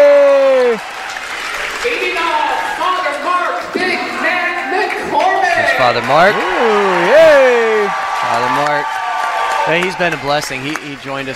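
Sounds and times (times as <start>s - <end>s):
person yelling: 0.0s - 0.8s, 6.3s - 8.0s
crowd applause and cheering as a school's home team is introduced: 0.0s - 11.3s
speech: 5.9s - 7.6s, 9.7s - 11.3s.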